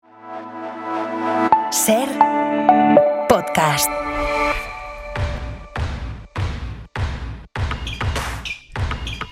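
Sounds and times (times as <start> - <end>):
basketball theme jingle: 0.2 - 6.3
speech: 1.7 - 2.4, 3.5 - 4.3.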